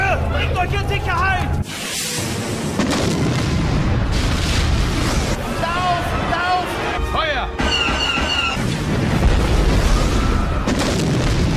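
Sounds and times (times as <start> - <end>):
speech: 0.1 - 1.8
explosions: 1.6 - 6.3, 7.6 - 11.5
weapons fire: 1.7 - 5.5, 7.6 - 11.5.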